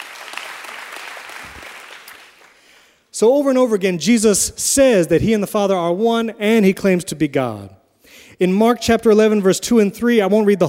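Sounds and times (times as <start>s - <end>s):
audience clapping: 0.0s - 3.0s
speech: 3.2s - 7.8s, 8.4s - 10.6s.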